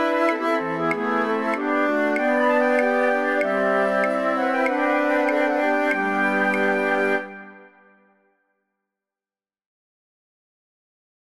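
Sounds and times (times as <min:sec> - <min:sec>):
flute choir playing all parts together: 0:00.0 - 0:08.2.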